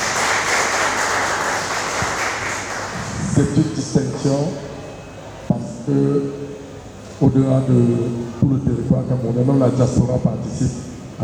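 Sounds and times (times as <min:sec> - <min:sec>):
audience applause: 0:00.0 - 0:03.2
speech: 0:03.4 - 0:04.6, 0:05.5 - 0:06.4, 0:07.2 - 0:11.2.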